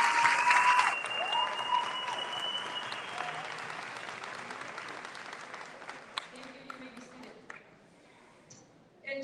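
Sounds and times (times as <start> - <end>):
crowd applauding: 0.0 - 7.2.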